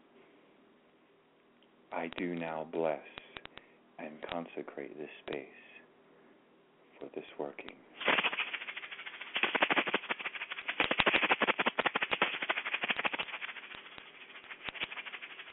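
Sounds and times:
speech: 1.9s - 3.2s, 4.0s - 5.7s, 7.0s - 8.2s
ritual shaker rattling: 8.0s - 15.5s.

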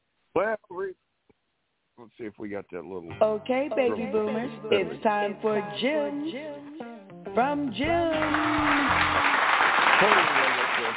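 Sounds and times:
speech: 0.4s - 1.0s, 2.0s - 6.8s, 7.4s - 9.4s, 10.0s - 10.4s
audience applause: 8.1s - 10.9s.

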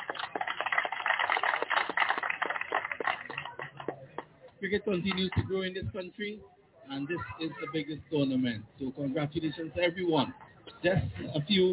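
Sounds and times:
audience applause: 0.0s - 4.0s
speech: 4.6s - 11.7s.

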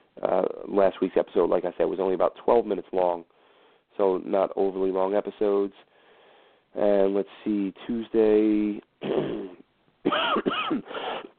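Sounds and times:
speech: 0.2s - 3.4s, 4.0s - 5.9s, 6.8s - 9.4s, 10.1s - 11.2s
loud harsh coughs into the microphone: 9.0s - 11.3s.

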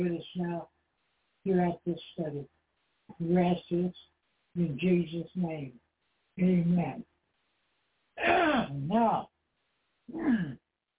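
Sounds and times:
speech: 0.0s - 0.7s, 1.4s - 2.6s, 3.2s - 5.8s, 6.4s - 7.1s, 8.2s - 9.3s, 10.1s - 10.6s
throat clearing: 8.2s - 8.8s.

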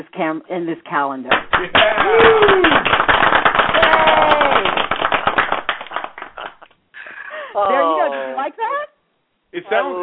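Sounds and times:
speech: 0.0s - 3.1s, 4.0s - 4.8s, 7.6s - 8.8s, 9.5s - 10.0s
hand clapping: 1.3s - 6.8s.

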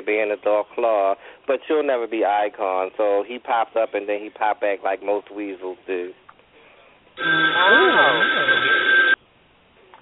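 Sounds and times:
speech: 0.0s - 6.2s, 7.2s - 8.9s
telephone ringing for an incoming call: 7.2s - 9.2s.

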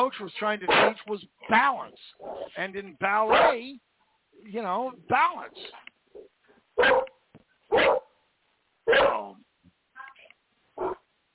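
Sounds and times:
speech: 0.0s - 5.9s, 6.8s - 7.1s, 8.9s - 9.4s
dog barking: 0.7s - 1.0s, 3.3s - 3.6s, 6.8s - 8.1s, 8.9s - 9.3s, 10.8s - 11.0s.

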